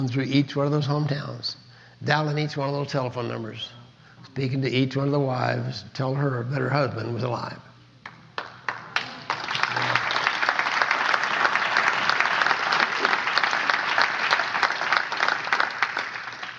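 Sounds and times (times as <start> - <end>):
speech: 0.0 - 7.7
audience applause: 8.4 - 16.5.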